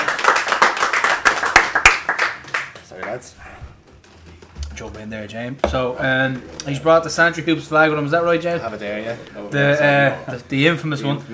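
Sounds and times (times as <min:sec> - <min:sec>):
audience applause: 0:00.0 - 0:03.4
speech: 0:03.1 - 0:03.5, 0:04.8 - 0:11.3.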